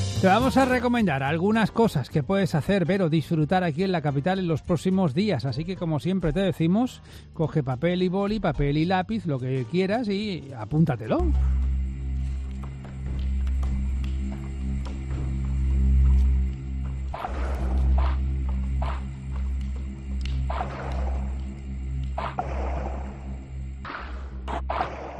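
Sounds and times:
speech: 0.2s - 11.7s
deep sustained drones in moody soundtrack music: 11.0s - 24.7s.

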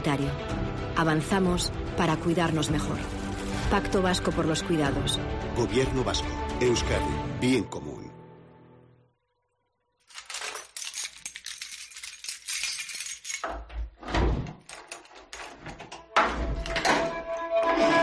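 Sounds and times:
speech: 0.0s - 8.0s
keys jingling: 10.1s - 13.7s, 14.6s - 15.6s
lock turning: 13.4s - 17.3s
door creaking open: 13.4s - 17.9s.

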